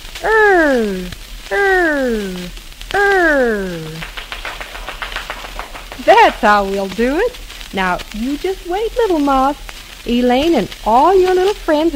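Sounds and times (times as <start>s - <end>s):
speech: 0.2s - 2.6s, 6.2s - 11.9s
children clapping their hands: 3.0s - 7.0s.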